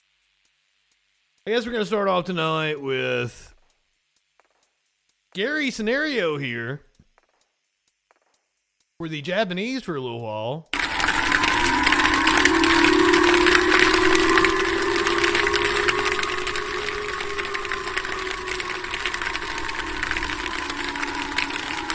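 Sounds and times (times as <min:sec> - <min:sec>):
dense crackling hissy background: 0:00.0 - 0:09.4, 0:10.8 - 0:21.9
speech: 0:01.4 - 0:03.5, 0:05.3 - 0:06.9, 0:09.0 - 0:10.8
air raid sirens wailing in Japan: 0:10.8 - 0:21.9.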